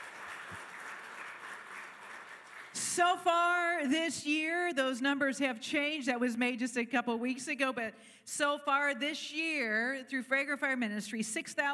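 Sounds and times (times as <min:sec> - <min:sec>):
audience hand clapping: 0:00.0 - 0:02.9
speech: 0:03.0 - 0:11.7.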